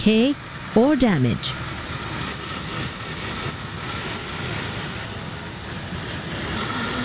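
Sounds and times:
speech: 0.0s - 1.7s
resistance drill boring into tree wood: 2.3s - 6.9s.

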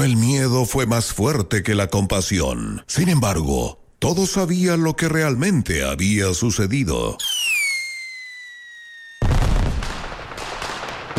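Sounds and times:
speech: 0.0s - 7.3s
high falling whistle: 7.2s - 9.5s
loud crackling burst like gunfire: 7.4s - 11.1s.

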